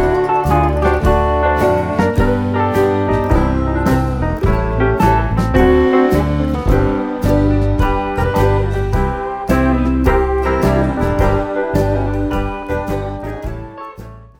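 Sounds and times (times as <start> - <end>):
lazy blues ringtone: 0.0 - 13.7.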